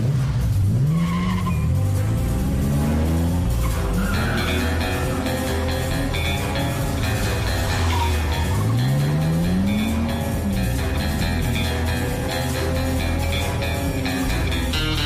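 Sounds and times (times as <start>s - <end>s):
James Bond cars accelerating with engines revving: 0.0s - 15.0s
tires squealing and skidding: 0.0s - 15.0s.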